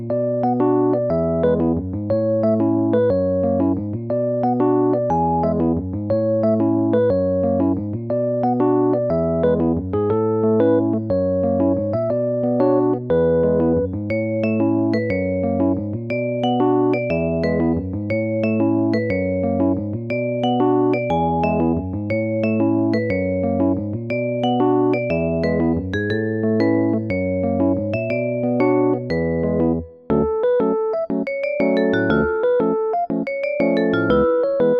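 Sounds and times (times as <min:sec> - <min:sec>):
new age music: 0:00.1 - 0:07.6, 0:08.1 - 0:34.7.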